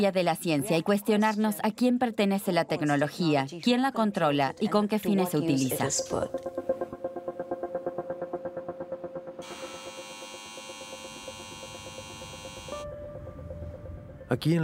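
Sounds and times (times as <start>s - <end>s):
speech: 0.0s - 7.0s, 14.3s - 14.6s
turbines of a giant CO2 vacuum machine: 9.4s - 13.0s.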